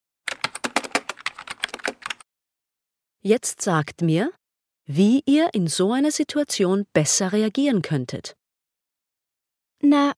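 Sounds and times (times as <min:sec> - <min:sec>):
quick typing on a keyboard: 0:00.3 - 0:02.2
speech: 0:03.2 - 0:08.4, 0:09.8 - 0:10.1.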